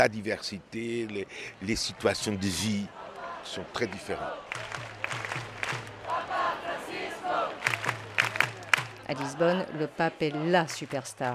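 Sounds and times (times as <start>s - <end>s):
speech: 0.0s - 5.5s, 9.1s - 11.3s
crowd of young people shouting and cheering: 1.6s - 11.3s
scattered sharp claps: 4.5s - 6.2s, 7.6s - 9.3s.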